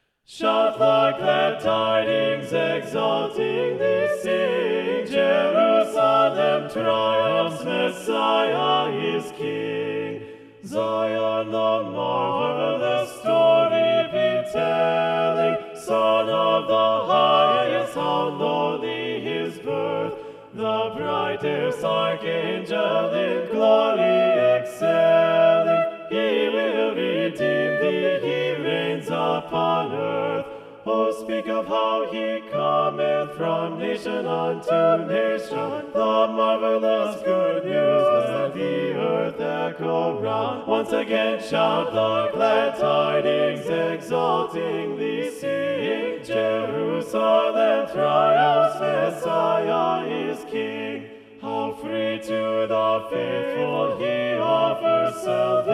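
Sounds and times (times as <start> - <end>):
SATB four-part choir singing: 0.0 - 55.7.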